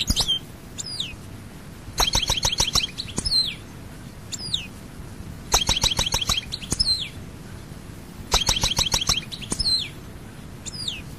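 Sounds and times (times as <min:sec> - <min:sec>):
European goldfinch calling: 0:00.0 - 0:01.2, 0:02.0 - 0:03.7, 0:04.3 - 0:04.7, 0:05.5 - 0:07.2, 0:08.3 - 0:10.0, 0:10.6 - 0:11.1.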